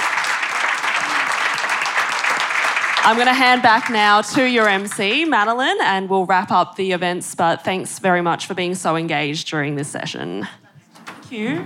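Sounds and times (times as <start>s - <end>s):
sustained audience applause for panellists: 0.0s - 5.5s
speech: 3.0s - 10.6s, 11.3s - 11.6s.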